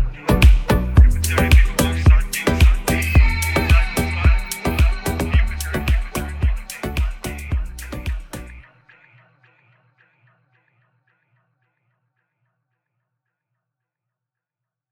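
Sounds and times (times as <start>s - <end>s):
deep disco mix: 0.0s - 8.7s.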